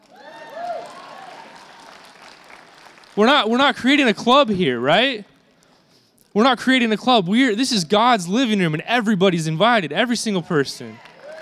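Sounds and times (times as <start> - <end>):
audience applause: 0.0 - 3.2, 10.8 - 11.4
speech: 3.2 - 5.3, 6.4 - 11.1.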